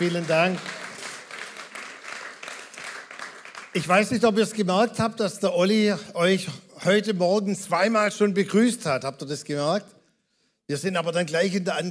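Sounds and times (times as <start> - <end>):
speech: 0.0 - 0.8, 3.7 - 10.0, 10.7 - 11.8
church audience applause for the worship team: 0.0 - 4.5.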